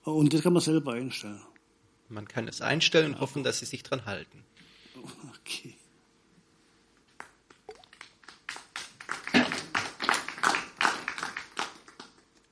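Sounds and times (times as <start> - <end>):
speech: 0.0 - 5.8
audience applause: 7.8 - 12.3.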